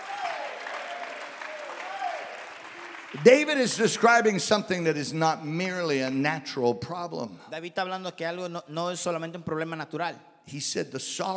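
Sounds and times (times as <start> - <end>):
audience clapping hands: 0.0 - 4.5
speech: 3.1 - 11.3.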